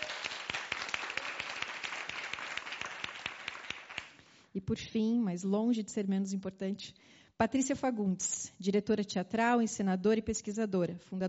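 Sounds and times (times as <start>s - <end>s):
audience applause: 0.0s - 4.2s
speech: 4.6s - 11.2s.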